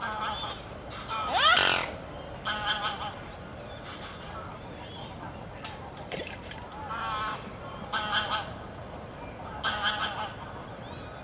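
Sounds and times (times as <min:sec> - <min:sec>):
goose honking: 0:00.0 - 0:03.2, 0:06.9 - 0:08.6, 0:09.5 - 0:10.5.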